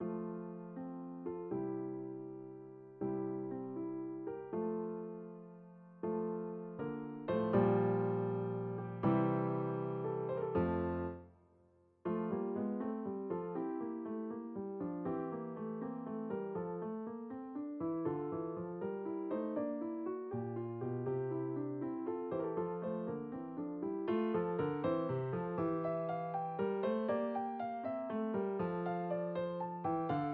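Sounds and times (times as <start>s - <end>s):
piano piece: 0.0s - 11.4s, 12.0s - 30.3s.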